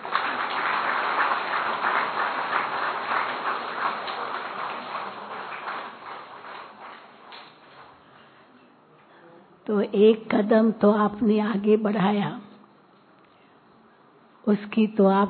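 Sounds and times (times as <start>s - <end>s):
audience clapping: 0.0s - 8.2s
speech: 9.7s - 12.4s, 14.5s - 15.2s.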